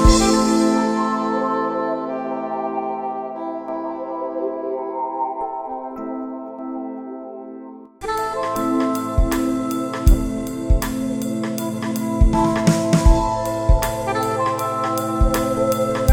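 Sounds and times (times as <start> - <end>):
jazz music: 0.0 - 3.0, 8.0 - 16.1.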